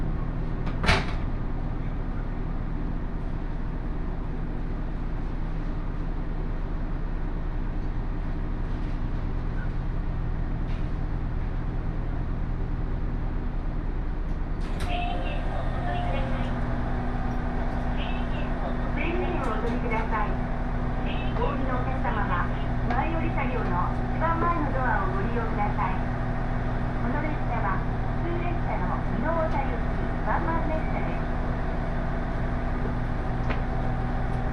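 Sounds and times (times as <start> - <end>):
Takayama Line local train engine drone: 0.0 - 34.5
voices: 14.8 - 33.0.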